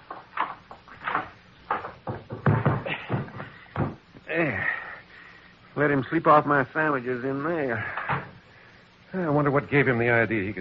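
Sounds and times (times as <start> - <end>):
closet door being opened and closed: 0.1 - 4.0, 7.9 - 8.4
speech: 5.8 - 8.2, 9.1 - 10.5.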